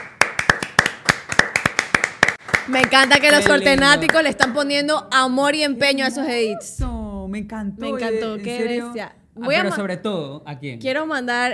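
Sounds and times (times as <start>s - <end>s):
audience applause: 0.0s - 4.4s
speech: 2.7s - 11.5s.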